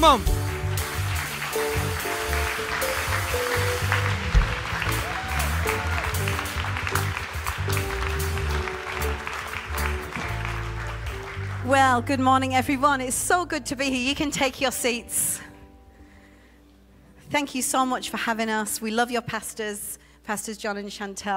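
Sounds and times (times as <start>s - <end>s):
speech: 0.0s - 0.4s, 1.5s - 3.8s, 11.7s - 15.5s, 17.3s - 21.3s
audience clapping to welcome a speaker onto the stage: 0.0s - 12.0s.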